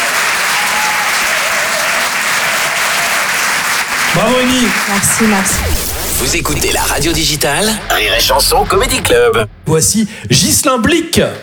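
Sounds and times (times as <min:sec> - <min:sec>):
audience applause: 0:00.0 - 0:09.0
speech: 0:04.2 - 0:11.4.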